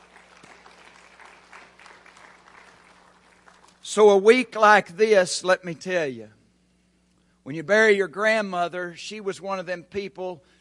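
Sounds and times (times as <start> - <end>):
church congregation applauding during a sermon: 0.0 - 4.0
speech: 3.9 - 6.4, 7.4 - 10.5.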